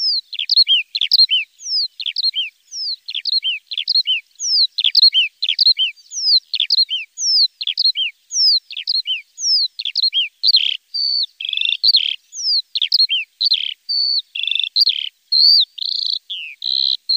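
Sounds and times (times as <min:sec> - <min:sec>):
lark song: 0:00.0 - 0:17.1.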